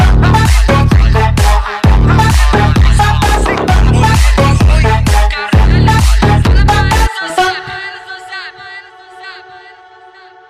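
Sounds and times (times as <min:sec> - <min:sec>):
baile funk and sertanejo music: 0:00.0 - 0:07.9.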